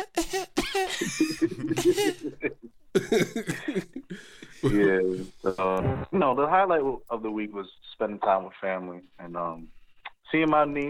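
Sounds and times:
exaggerated theatrical coughing: 0.0s - 5.4s
laughter: 0.6s - 4.9s
speech: 4.6s - 10.8s.

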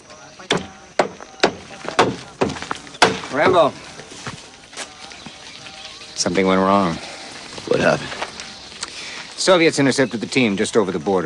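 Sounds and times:
large wooden wheel hammered onto an upturned cart: 0.5s - 3.8s
speech: 3.3s - 3.9s, 6.3s - 8.2s, 9.5s - 11.2s.

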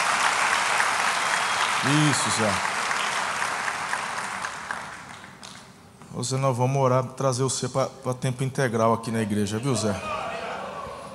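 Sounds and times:
audience applauding: 0.0s - 5.7s
speech: 1.8s - 2.7s, 6.2s - 10.2s.

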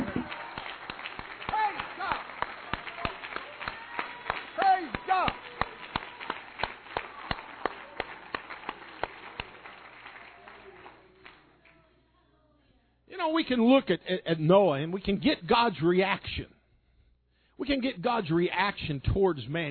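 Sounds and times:
audience clapping hands: 0.0s - 11.8s
speech: 13.4s - 16.6s, 17.6s - 19.6s.

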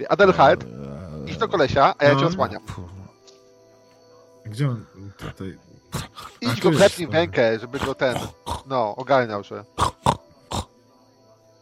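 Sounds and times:
speech: 0.0s - 3.0s, 4.5s - 9.9s
human voice imitating a wild boar: 0.2s - 3.2s, 5.1s - 8.8s, 9.8s - 10.7s.

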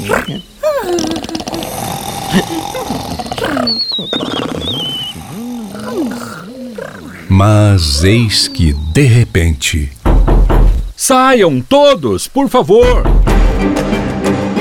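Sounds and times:
speech: 0.0s - 2.8s, 7.4s - 10.0s, 11.0s - 14.1s
several people snoring loudly: 0.0s - 9.2s.

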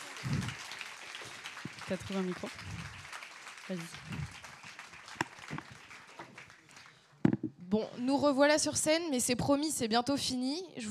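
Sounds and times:
audience applause: 0.0s - 7.2s
speech: 1.9s - 3.0s, 3.7s - 4.3s, 7.8s - 10.8s.

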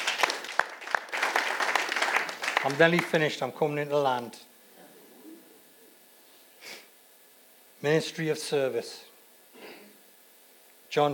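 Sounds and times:
audience clapping: 0.0s - 3.4s
speech: 2.6s - 4.5s, 7.8s - 9.1s, 10.9s - 11.1s.

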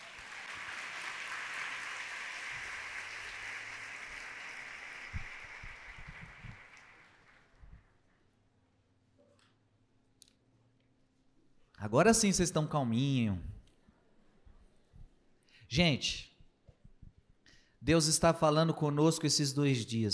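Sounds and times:
crowd applauding: 0.0s - 7.8s
speech: 11.8s - 13.5s, 15.7s - 16.3s, 17.8s - 20.1s.

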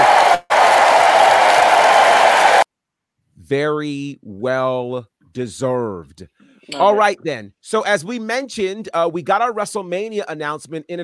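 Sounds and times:
audience applause: 0.0s - 2.6s
speech: 3.5s - 11.0s.

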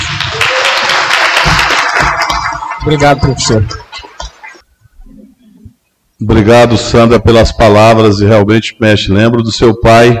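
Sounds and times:
audience applause: 0.0s - 4.6s
speech: 2.8s - 3.8s, 6.2s - 10.1s.

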